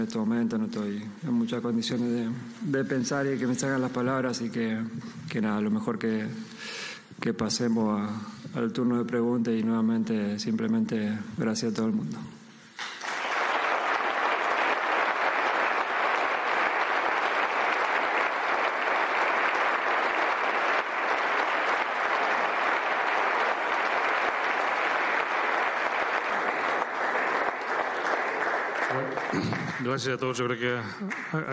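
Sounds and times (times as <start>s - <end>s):
speech: 0.0s - 12.4s, 29.9s - 31.5s
audience applause: 12.8s - 30.1s.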